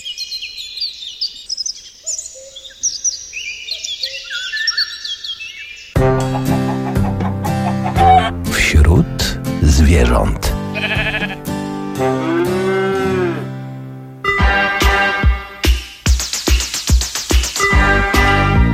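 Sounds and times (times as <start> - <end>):
common swifts giving shrill screaming calls: 0.0 - 6.0
music: 6.0 - 18.7.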